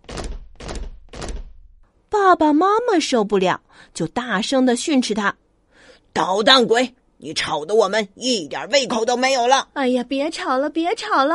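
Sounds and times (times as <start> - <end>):
foot stomping: 0.0 - 1.8
speech: 2.3 - 5.4, 6.1 - 11.3.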